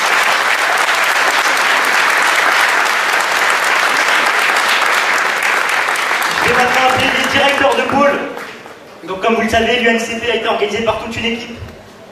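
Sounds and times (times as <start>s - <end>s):
audience applause: 0.0s - 8.8s
speech: 9.1s - 11.7s.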